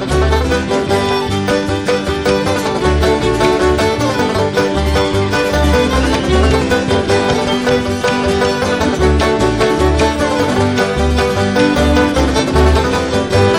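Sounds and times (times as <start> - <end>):
banjo playing an Irish pub song reel: 0.0 - 13.5.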